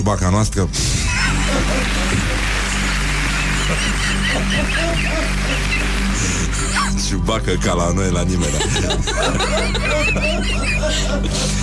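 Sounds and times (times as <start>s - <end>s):
speech: 0.1s - 2.4s, 3.7s - 11.6s
laughter: 1.1s - 7.0s, 8.3s - 11.6s
crowd applauding: 1.2s - 6.9s.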